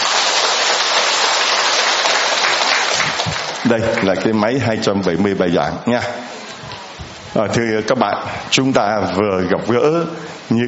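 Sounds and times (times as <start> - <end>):
applause: 0.0 - 4.6
speech: 3.7 - 6.3, 7.3 - 10.6.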